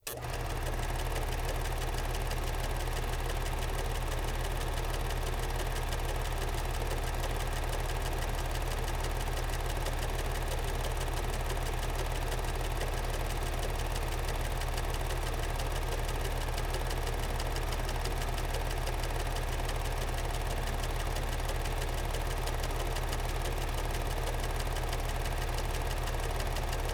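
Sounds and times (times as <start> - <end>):
film projector running in slow motion: 0.0 - 26.9.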